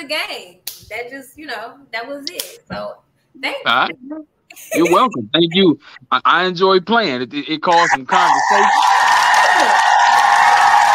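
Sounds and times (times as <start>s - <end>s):
speech: 0.0s - 9.8s
laughter: 4.5s - 6.0s, 7.7s - 8.7s
hand clap applause sound effect: 8.8s - 10.9s.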